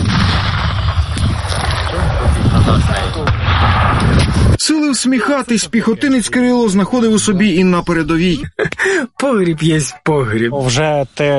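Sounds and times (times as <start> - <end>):
gunshot: 0.0 - 4.6
speech: 4.9 - 11.3.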